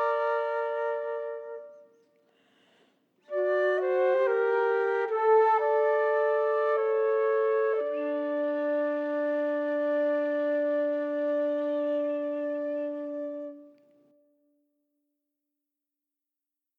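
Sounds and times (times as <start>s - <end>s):
chamber flutes playing a chorale without the first part: 0.0s - 2.1s, 3.3s - 14.2s.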